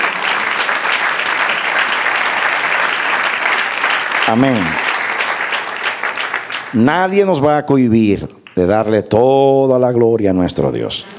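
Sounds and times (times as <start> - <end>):
audience applauding: 0.0 - 7.6, 8.4 - 8.9
speech: 4.3 - 4.9, 6.7 - 11.1.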